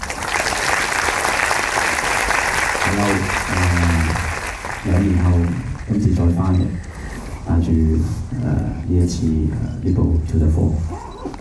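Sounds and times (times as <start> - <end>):
audience applause welcoming a performer: 0.0 - 6.1
speech: 4.9 - 6.9, 7.5 - 11.0.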